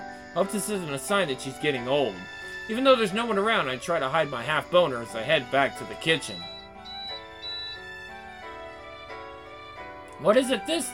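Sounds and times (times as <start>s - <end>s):
speech: 0.4s - 6.5s, 10.2s - 10.9s
electronic alarm-like beeping: 6.2s - 8.1s.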